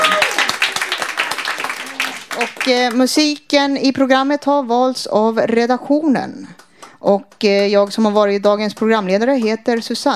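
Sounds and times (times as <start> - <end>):
applause from a small group: 0.0 - 3.1
speech: 2.6 - 10.1.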